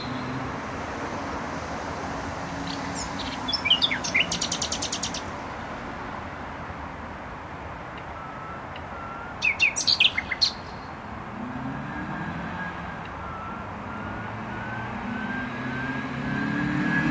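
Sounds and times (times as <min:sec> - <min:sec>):
nightingale chirps and trill: 0:00.0 - 0:00.5, 0:02.5 - 0:05.4, 0:08.7 - 0:11.0
loud steady traffic roar: 0:00.0 - 0:17.0.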